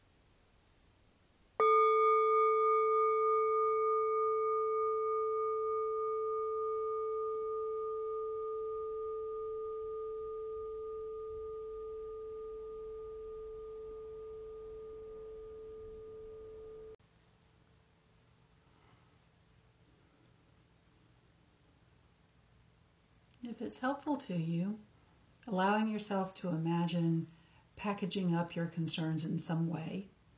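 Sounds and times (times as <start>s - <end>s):
meditation bell ringing: 1.6s - 17.0s
speech: 23.6s - 24.9s, 25.5s - 30.1s.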